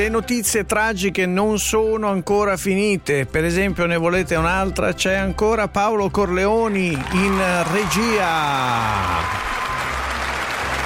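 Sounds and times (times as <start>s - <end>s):
speech: 0.0s - 9.5s
loved ones clapping on an Italian show: 6.6s - 10.8s.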